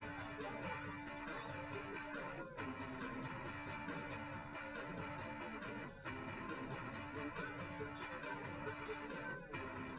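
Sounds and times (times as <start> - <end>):
live recorded drums: 0.0 - 9.9.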